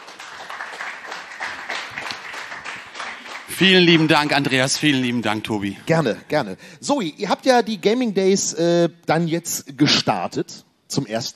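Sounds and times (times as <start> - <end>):
audience applause: 0.0 - 5.3
speech: 3.5 - 11.3.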